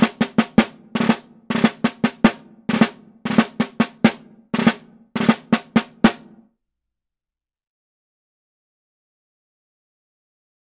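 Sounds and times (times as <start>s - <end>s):
closed double ratamacue snare drum rudiment: 0.0s - 6.4s.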